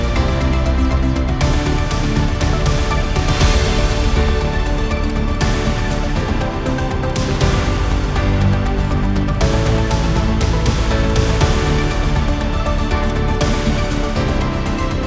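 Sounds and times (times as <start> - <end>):
upbeat news music for sport and politics: 0.0 - 15.0.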